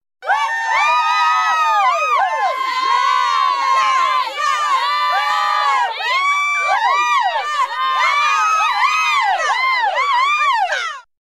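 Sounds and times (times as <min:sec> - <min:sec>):
small group of women cheering: 0:00.2 - 0:11.1.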